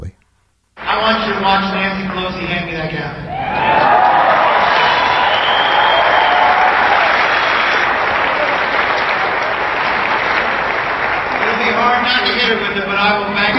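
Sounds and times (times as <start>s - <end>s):
large crowd clapping: 0.8s - 13.5s
speech: 1.0s - 4.1s, 12.1s - 13.5s.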